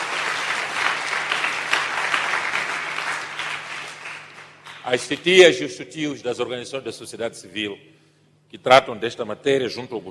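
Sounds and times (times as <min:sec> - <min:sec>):
audience applause: 0:00.0 - 0:05.1
speech: 0:04.9 - 0:07.9, 0:08.5 - 0:10.0.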